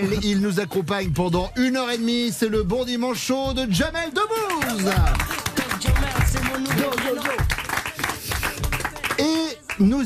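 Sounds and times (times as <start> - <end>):
speech: 0.0 - 5.4, 6.6 - 7.6, 9.2 - 10.0
audience applauding: 4.4 - 10.0.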